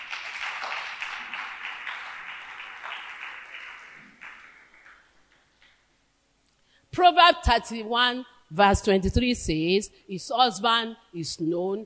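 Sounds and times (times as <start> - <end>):
crowd applause: 0.0 - 5.4
speech: 7.0 - 11.8.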